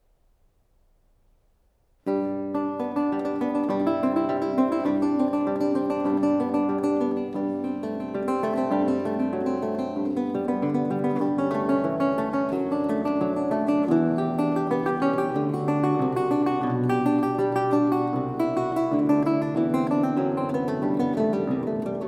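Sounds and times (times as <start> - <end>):
lute prelude in A major: 2.1 - 22.0.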